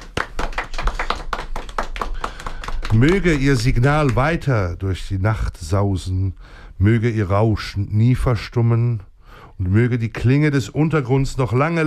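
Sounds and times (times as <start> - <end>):
applause: 0.0 - 4.5
speech: 2.9 - 11.8.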